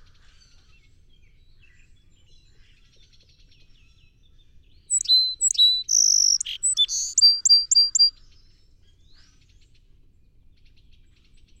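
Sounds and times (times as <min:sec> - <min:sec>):
song sparrow singing: 0:04.9 - 0:08.1.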